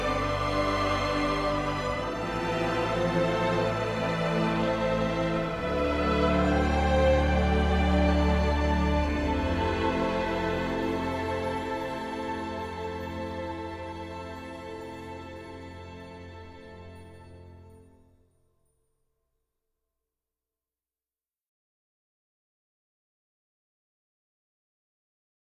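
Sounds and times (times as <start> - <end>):
orchestral film music: 0.0 - 18.2.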